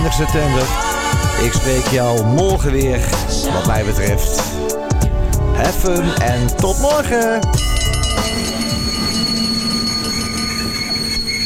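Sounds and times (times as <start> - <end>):
speech: 0.1 - 4.8, 5.6 - 8.6
Intercity train rolling on rails approaching Deventer station: 7.6 - 11.4
high-pitched whining tones of the train: 7.6 - 11.4.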